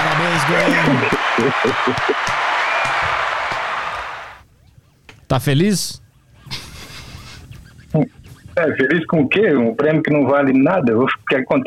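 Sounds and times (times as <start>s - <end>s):
laughter: 0.0s - 2.4s, 6.4s - 8.8s
crowd applauding: 0.0s - 4.4s
speech: 0.5s - 2.5s, 5.3s - 6.6s, 7.9s - 11.6s.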